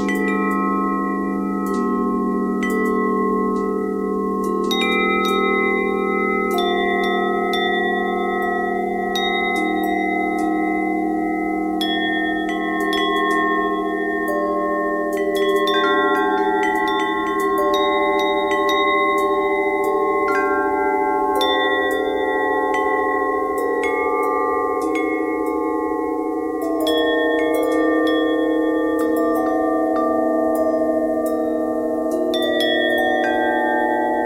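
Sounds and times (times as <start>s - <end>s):
bells ringing: 0.0s - 34.2s.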